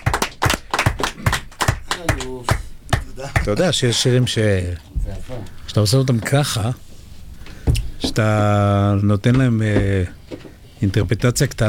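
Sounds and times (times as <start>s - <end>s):
audience clapping: 0.0s - 3.8s
speech: 3.2s - 6.9s, 8.0s - 10.2s, 10.8s - 11.6s.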